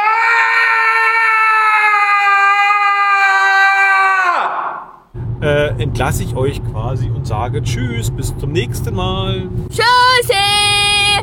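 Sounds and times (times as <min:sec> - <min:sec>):
person screaming: 0:00.0 - 0:05.0
speech: 0:05.8 - 0:10.7.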